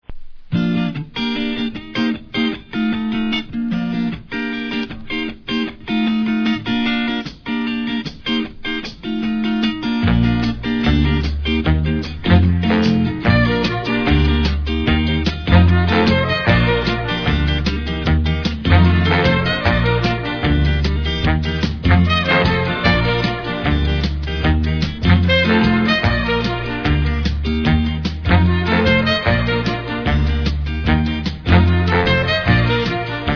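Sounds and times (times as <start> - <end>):
jazz music: 0.6 - 33.3.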